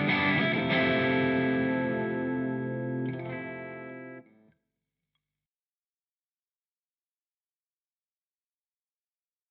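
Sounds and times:
Boss GT 1000 Core amp Diamond Crunch tone: 0.0 - 4.3.

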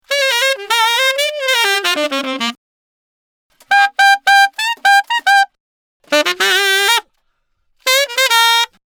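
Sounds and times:
tenor saxophone solo: 0.1 - 2.6, 3.6 - 7.1, 7.8 - 8.8.

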